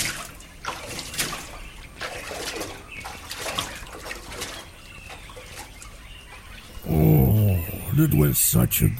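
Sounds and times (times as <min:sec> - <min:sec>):
water splashing during an early-morning swim and bath: 0:00.0 - 0:06.8
speech: 0:08.0 - 0:08.9.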